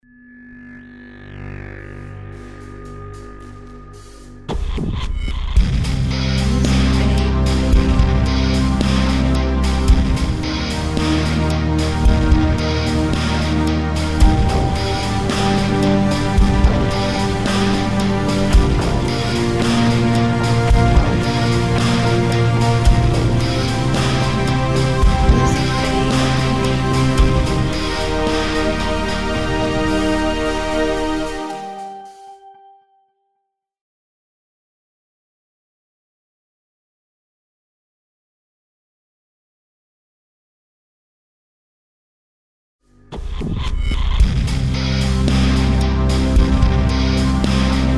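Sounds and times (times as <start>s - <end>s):
cinematic action intro music: 0.8s - 32.3s, 43.1s - 47.9s.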